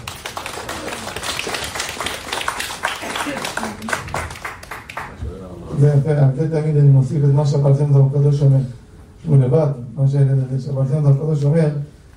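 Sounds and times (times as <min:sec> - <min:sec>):
audience clapping hands: 0:00.0 - 0:05.2
speech: 0:05.8 - 0:11.8.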